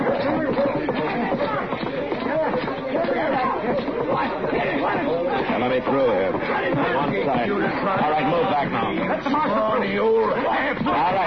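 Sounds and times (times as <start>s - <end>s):
crowd gathered around a street fight: 0.0s - 11.2s.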